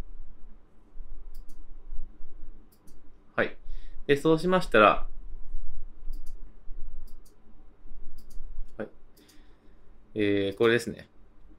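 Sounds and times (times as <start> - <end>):
low hum: 0.0 - 11.5
computer mouse clicks: 1.3 - 1.6, 6.1 - 6.4, 7.0 - 7.4, 8.1 - 8.4
speech: 3.4 - 5.1, 10.2 - 11.1.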